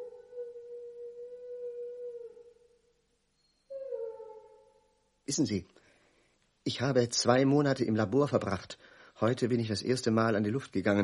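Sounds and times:
dogs howling: 0.0s - 2.4s
speech: 5.3s - 5.8s, 6.6s - 11.0s.

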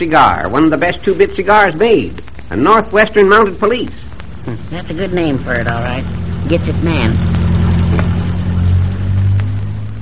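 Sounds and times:
speech: 0.0s - 7.3s
car engine droning as it goes by: 5.4s - 10.0s.

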